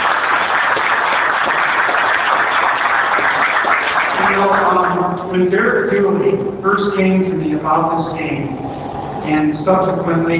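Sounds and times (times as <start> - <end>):
audience applause: 0.0 - 5.2
speech: 5.3 - 10.3.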